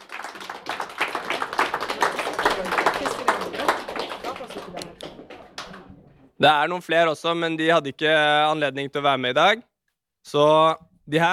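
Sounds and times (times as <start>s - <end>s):
audience applause: 0.0s - 6.3s
speech: 6.4s - 9.7s, 10.3s - 11.3s.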